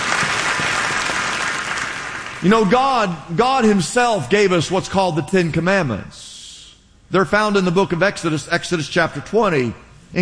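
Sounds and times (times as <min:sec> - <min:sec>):
audience clapping at a Bible sermon: 0:00.0 - 0:02.8
speech: 0:02.4 - 0:06.3, 0:07.1 - 0:10.2.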